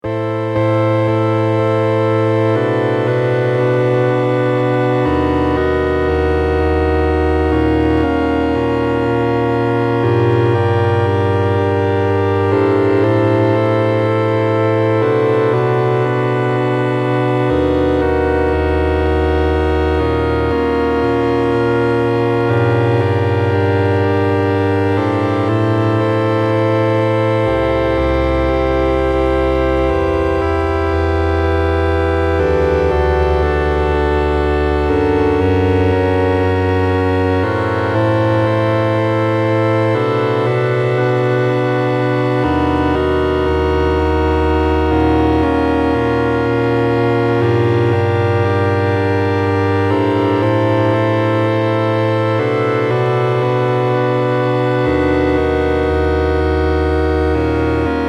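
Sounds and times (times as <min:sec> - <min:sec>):
organ: 0:00.0 - 0:58.0.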